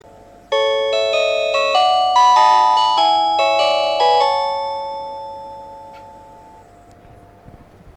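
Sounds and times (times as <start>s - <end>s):
chime: 0.5s - 6.6s.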